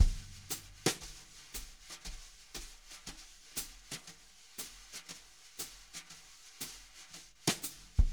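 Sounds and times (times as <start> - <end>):
jazz brush drum loop: 0.0 - 8.1.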